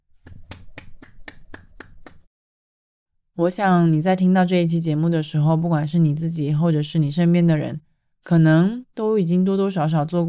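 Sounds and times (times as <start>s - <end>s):
hand clapping: 0.2s - 2.3s
speech: 3.4s - 10.2s.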